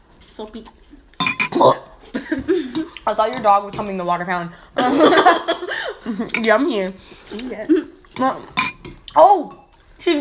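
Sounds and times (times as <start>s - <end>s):
speech: 0.4s - 8.6s, 9.2s - 10.1s
spoons clinking against soup bowls during a meal: 1.2s - 1.6s, 6.3s - 6.6s, 8.2s - 9.8s.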